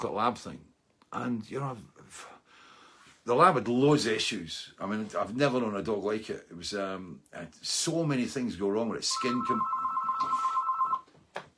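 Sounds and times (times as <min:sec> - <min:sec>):
speech: 0:00.0 - 0:02.4, 0:03.2 - 0:10.4
phone ringing with electronic trill: 0:09.1 - 0:11.1.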